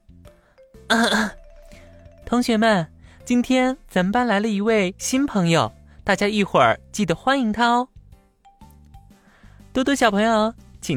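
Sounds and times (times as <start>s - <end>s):
speech: 0.9s - 1.4s, 2.3s - 7.9s, 9.8s - 10.9s
throat clearing: 0.9s - 1.4s.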